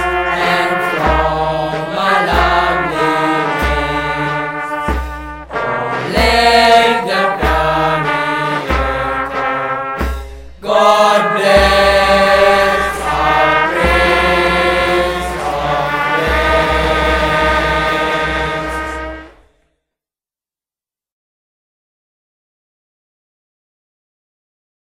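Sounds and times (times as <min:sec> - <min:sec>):
national anthem: 0:00.0 - 0:19.5.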